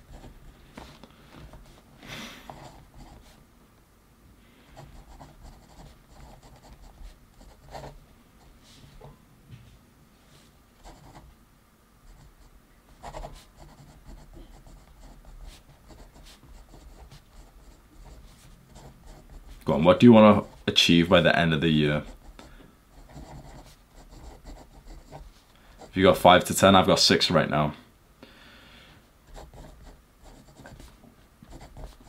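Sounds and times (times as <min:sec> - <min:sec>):
handwriting scratching while writing down personal goals: 0:04.8 - 0:08.0, 0:13.0 - 0:19.6, 0:23.0 - 0:26.0, 0:29.3 - 0:32.0
speech: 0:19.7 - 0:22.2, 0:26.0 - 0:27.8.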